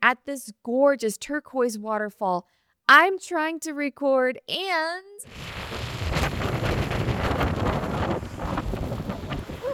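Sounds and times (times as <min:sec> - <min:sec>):
speech: 0:00.1 - 0:06.6
strong Patagonian wind: 0:05.3 - 0:09.7.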